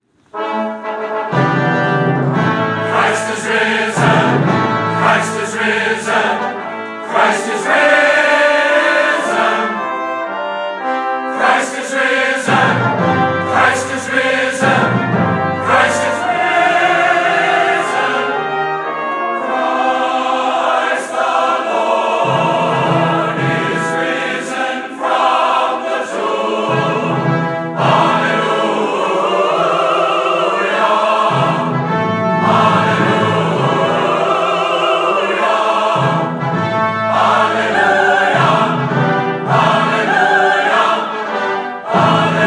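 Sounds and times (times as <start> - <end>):
Easter fanfare: 0.3 - 42.4.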